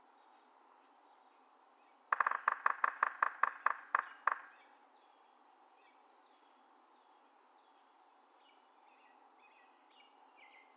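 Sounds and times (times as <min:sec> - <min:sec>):
Yellow-bellied Sapsucker drumming: 0:02.1 - 0:04.6.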